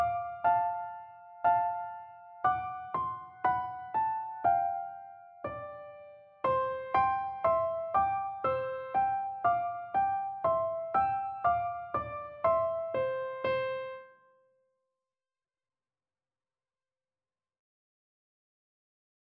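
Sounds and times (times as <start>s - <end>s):
piano duet: 0.0s - 14.2s.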